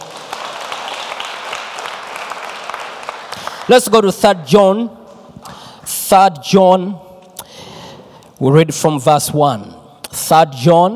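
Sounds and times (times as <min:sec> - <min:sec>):
audience clapping hands: 0:00.0 - 0:04.2
speech: 0:03.7 - 0:05.0, 0:06.1 - 0:07.0, 0:08.4 - 0:10.9.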